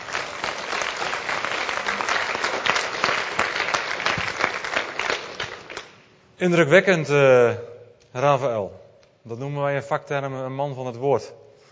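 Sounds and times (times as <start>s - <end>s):
audience applause: 0.0s - 6.0s
speech: 6.4s - 11.4s.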